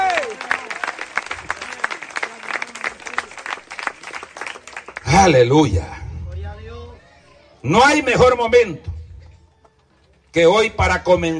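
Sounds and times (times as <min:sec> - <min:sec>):
audience applauding: 0:00.0 - 0:05.4
speech: 0:05.2 - 0:06.0, 0:07.6 - 0:08.9, 0:10.3 - 0:11.3.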